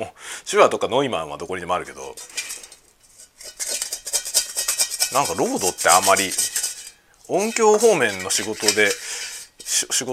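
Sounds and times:
speech: 0:00.0 - 0:02.5, 0:05.1 - 0:06.5, 0:07.3 - 0:10.1
metal cutlery clinking on a plate while eating fried rice: 0:02.2 - 0:10.1.

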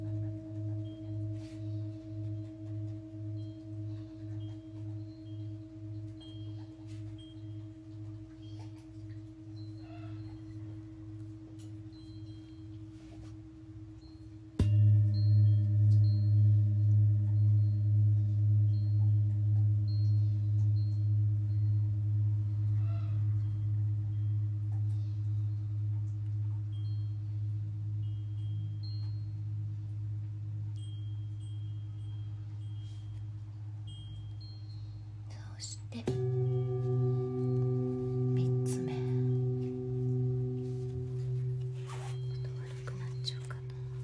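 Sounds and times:
three large singing bowls ringing for sound healing: 0:00.0 - 0:44.0.

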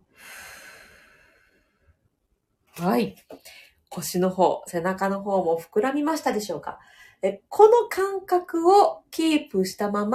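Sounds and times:
soft breath during a guided breathing exercise: 0:00.0 - 0:02.1
speech: 0:02.8 - 0:10.1.

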